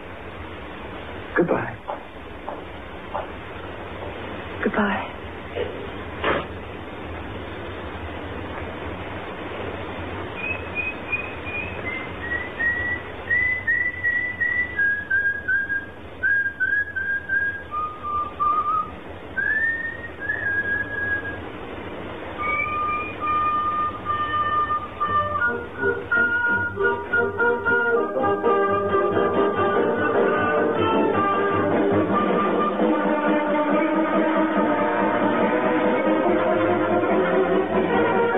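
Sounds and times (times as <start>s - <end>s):
steady low rumble: 0.0s - 38.3s
speech: 1.4s - 2.0s, 4.6s - 5.1s
person whistling a wandering melody: 10.4s - 21.4s, 22.4s - 27.9s.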